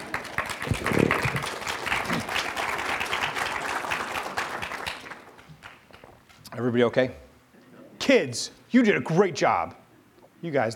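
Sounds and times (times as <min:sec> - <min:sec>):
audience round of applause: 0:00.0 - 0:06.0
speech: 0:06.6 - 0:07.3, 0:08.1 - 0:09.8, 0:10.4 - 0:10.7.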